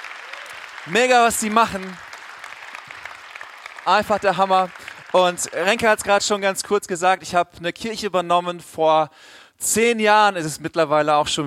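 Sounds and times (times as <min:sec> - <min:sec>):
audience applause: 0:00.0 - 0:06.5
speech: 0:00.8 - 0:02.0, 0:03.9 - 0:11.4.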